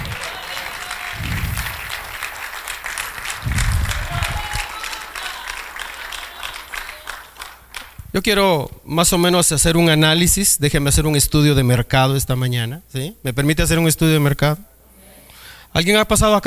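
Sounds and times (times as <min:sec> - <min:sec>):
voices and whoops: 0:00.0 - 0:01.9, 0:03.3 - 0:06.8
audience applause: 0:00.0 - 0:08.0
speech: 0:08.2 - 0:14.7, 0:15.7 - 0:16.4.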